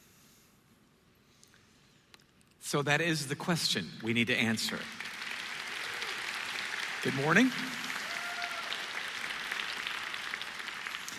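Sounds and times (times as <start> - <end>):
speech: 2.6 - 5.0, 7.0 - 7.8
audience clapping: 4.0 - 11.1.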